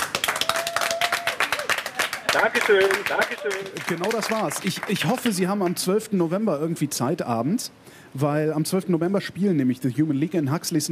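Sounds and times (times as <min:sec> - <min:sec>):
applause: 0:00.0 - 0:05.8
speech: 0:02.3 - 0:10.9.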